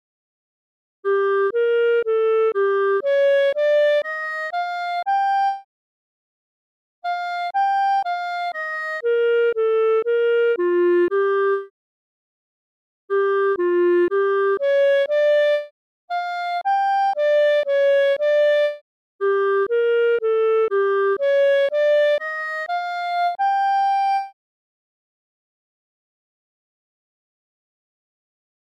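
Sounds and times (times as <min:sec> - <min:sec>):
musical poem: 0:01.1 - 0:05.6, 0:07.0 - 0:11.7, 0:13.1 - 0:24.4.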